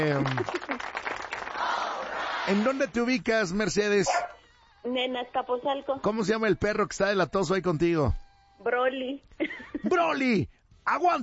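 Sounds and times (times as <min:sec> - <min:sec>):
speech: 0:00.0 - 0:00.7, 0:02.5 - 0:04.3, 0:04.9 - 0:11.2
audience applause for a first-time caller: 0:00.0 - 0:03.1.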